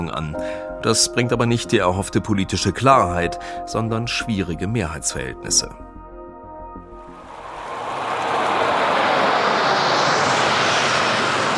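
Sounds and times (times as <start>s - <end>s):
speech: 0.0s - 5.9s
fighter jets flying overhead: 7.1s - 11.5s.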